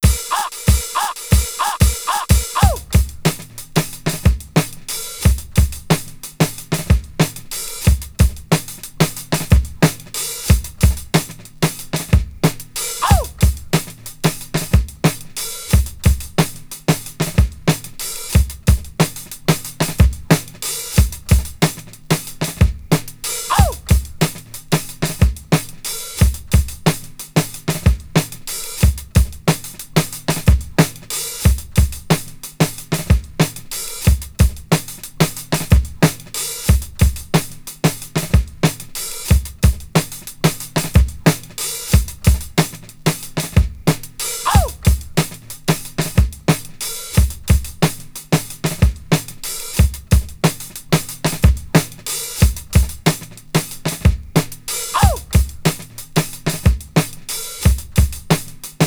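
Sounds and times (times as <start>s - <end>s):
drum breaks: 0.0s - 58.8s.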